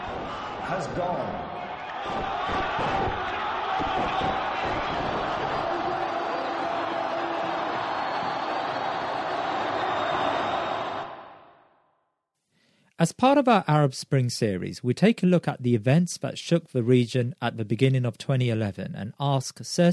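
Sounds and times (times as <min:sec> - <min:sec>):
massive crowd roaring and cheering at Mubarak's fall: 0:00.0 - 0:11.8
speech: 0:00.7 - 0:06.0, 0:13.0 - 0:19.9.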